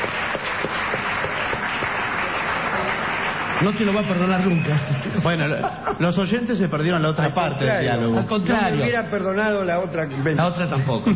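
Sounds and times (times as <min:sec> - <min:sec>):
applause: 0:00.0 - 0:05.4
speech: 0:03.6 - 0:11.1
laughter: 0:04.6 - 0:06.4, 0:10.0 - 0:11.1.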